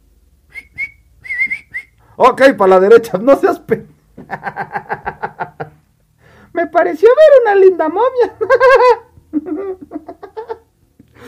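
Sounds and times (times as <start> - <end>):
person whistling canary-like birdsong: 0.5 - 2.0
speech: 2.2 - 4.9, 6.8 - 9.0
laughter: 4.2 - 5.8, 8.4 - 10.6.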